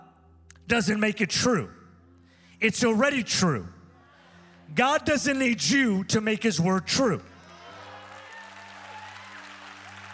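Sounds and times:
speech: 0.7 - 1.8, 2.6 - 3.8, 4.7 - 7.3
audience clapping hands: 7.4 - 10.1.

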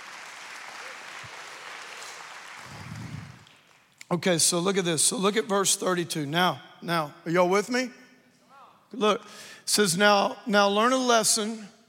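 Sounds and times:
audience clapping: 0.0 - 4.1
speech: 4.1 - 8.0, 8.9 - 11.8.

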